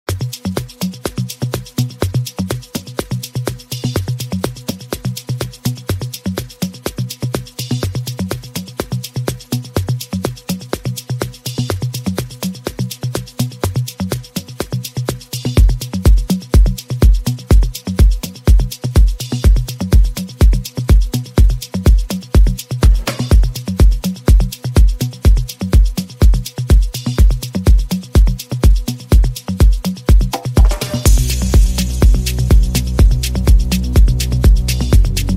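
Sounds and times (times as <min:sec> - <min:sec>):
afro house remix music: 0:00.0 - 0:35.3.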